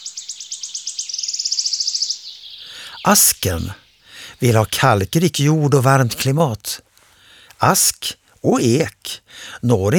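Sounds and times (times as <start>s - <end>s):
wood warbler singing: 0.0s - 6.5s
speech: 3.0s - 3.8s, 4.4s - 6.9s, 7.6s - 9.9s.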